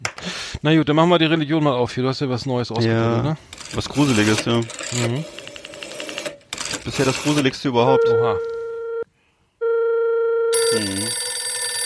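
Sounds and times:
speech: 0.2s - 5.4s, 6.8s - 8.5s, 10.7s - 11.2s
telephone ringing: 3.6s - 9.0s, 9.6s - 11.8s.

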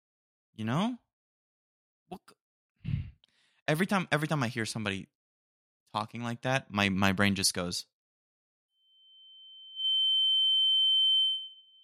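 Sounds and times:
speech: 0.6s - 1.0s, 2.1s - 3.0s, 3.7s - 5.2s, 5.9s - 7.9s
high-pitched ear ringing tone: 8.8s - 11.8s.

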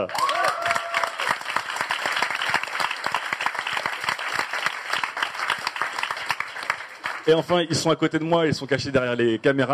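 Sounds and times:
speech: 0.0s - 0.3s, 7.3s - 9.7s
audience applause: 0.0s - 7.7s.

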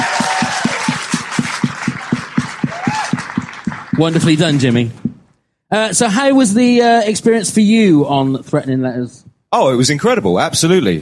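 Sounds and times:
audience applause: 0.0s - 4.9s
speech: 4.0s - 5.0s, 5.7s - 11.0s.

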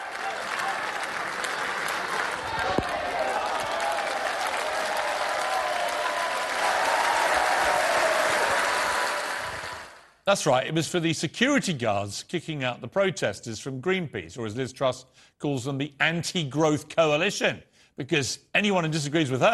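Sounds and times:
conference crowd cheering and applauding: 0.0s - 10.2s
speech: 10.3s - 19.5s.

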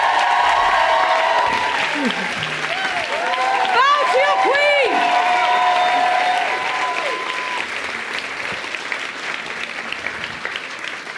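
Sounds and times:
audience cheering: 0.0s - 8.0s
audience applause: 0.0s - 11.1s.

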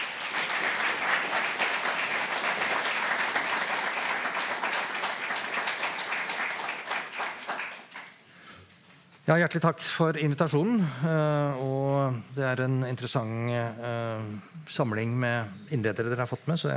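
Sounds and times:
audience applause: 0.0s - 8.2s
speech: 9.3s - 16.7s.

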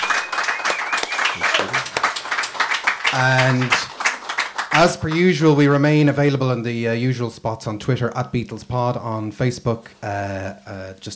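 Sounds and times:
audience applause: 0.0s - 5.3s
speech: 3.1s - 3.9s, 4.8s - 11.1s.

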